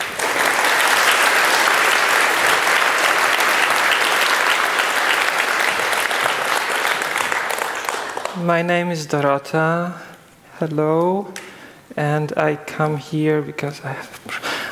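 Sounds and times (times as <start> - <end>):
crowd applauding to welcome a speaker: 0.0 - 8.7
speech: 8.4 - 14.4.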